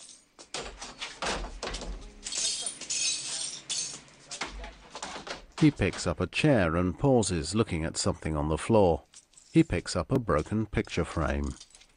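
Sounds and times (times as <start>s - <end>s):
broom sweeping up broken glass: 0.0s - 0.3s, 2.2s - 4.4s, 9.1s - 9.8s
speech: 5.6s - 11.6s.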